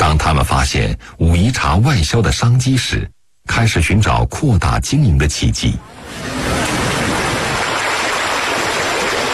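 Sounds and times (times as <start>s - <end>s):
speech: 0.1s - 6.4s
flowing creek water rushing: 5.9s - 9.3s.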